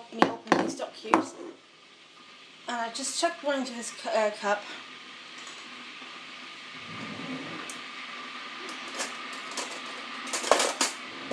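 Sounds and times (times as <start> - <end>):
kettle boiling: 0.0 - 11.3
speech: 2.7 - 4.9.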